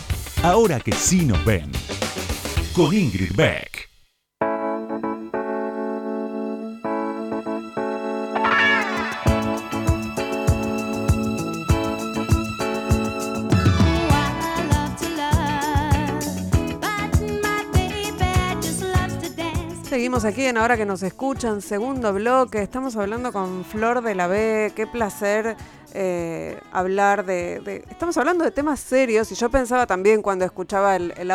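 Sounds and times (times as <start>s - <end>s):
music track: 0.3s - 3.3s, 4.4s - 22.0s
speech: 0.4s - 1.8s, 2.8s - 3.9s, 20.2s - 31.3s.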